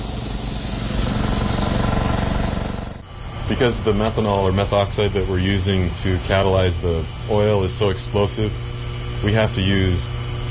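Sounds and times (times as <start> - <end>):
methoxide mixer motor running in a biodiesel processing setup: 0.0 - 10.4
speech: 3.5 - 10.2.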